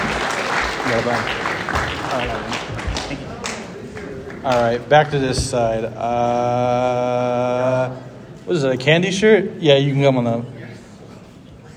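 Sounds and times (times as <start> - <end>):
audience applause: 0.0 - 5.0
speech: 0.9 - 3.2, 4.4 - 10.6.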